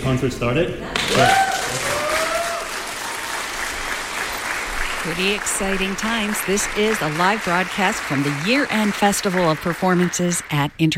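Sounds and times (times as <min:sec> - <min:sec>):
speech: 0:00.1 - 0:01.5, 0:05.0 - 0:10.9
audience applause: 0:00.9 - 0:10.7.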